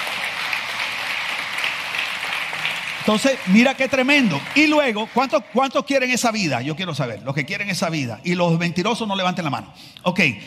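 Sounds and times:
audience applause: 0.0s - 6.4s
speech: 3.1s - 10.4s.

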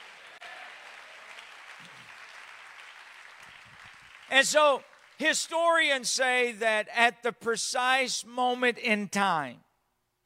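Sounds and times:
audience clapping hands: 0.0s - 5.4s
speech: 4.3s - 9.6s.

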